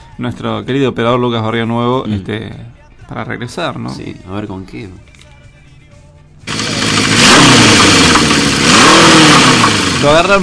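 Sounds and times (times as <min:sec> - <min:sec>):
speech: 0:00.2 - 0:05.1, 0:10.0 - 0:10.4
chainsaw running: 0:06.5 - 0:10.4.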